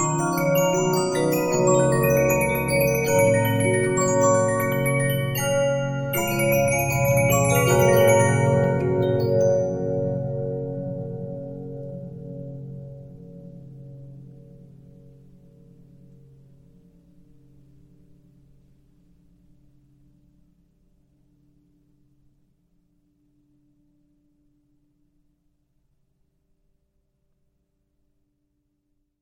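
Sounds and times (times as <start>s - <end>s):
Regina 15-inch disc music box: 0.0s - 10.8s.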